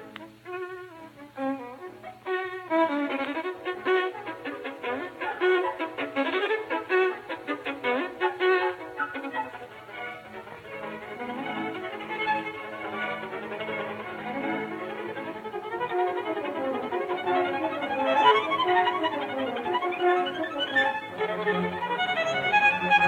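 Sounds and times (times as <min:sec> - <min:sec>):
live violin concerto finale with solo violin: 0:00.0 - 0:23.0.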